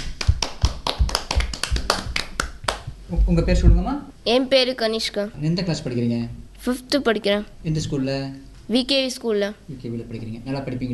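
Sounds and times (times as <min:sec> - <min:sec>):
group clapping hands: 0:00.0 - 0:03.0
speech: 0:03.1 - 0:10.9.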